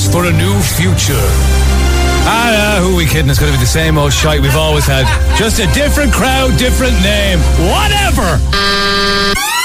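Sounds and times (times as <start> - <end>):
speech: 0.2 - 9.5
laughter: 3.0 - 6.6
car horn honking: 8.5 - 9.4.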